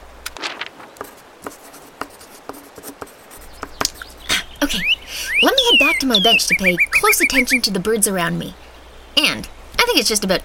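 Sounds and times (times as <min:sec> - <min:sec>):
pen scratching on paper writing notes: 0:01.0 - 0:04.3
speech: 0:04.7 - 0:08.6, 0:09.3 - 0:10.4.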